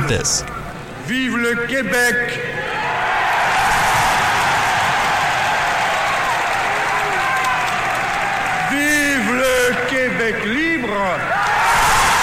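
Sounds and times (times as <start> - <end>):
speech: 0.1 - 2.7, 8.7 - 11.4
crowd cheering and applauding: 2.7 - 10.6, 11.2 - 12.2.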